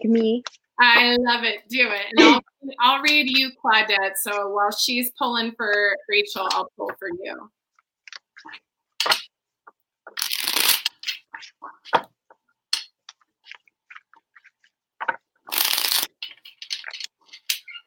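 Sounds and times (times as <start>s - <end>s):
speech: 0.0s - 7.6s, 8.4s - 9.2s
tarot-style oracle cards shuffled and spilling out: 10.1s - 12.0s, 15.0s - 17.7s.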